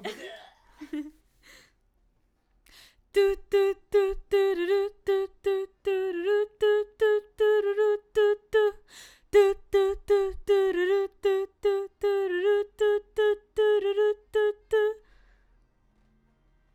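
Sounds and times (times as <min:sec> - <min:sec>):
background vocals: 0:02.8 - 0:15.2.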